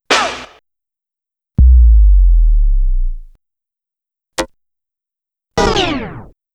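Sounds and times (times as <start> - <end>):
musical stabs: 1.6 - 3.3.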